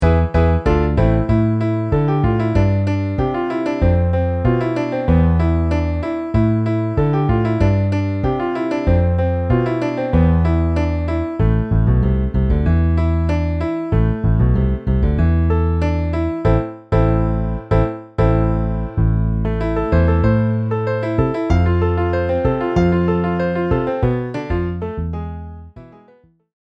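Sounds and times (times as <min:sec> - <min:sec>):
MIDI piano and bass: 0:00.0 - 0:26.4.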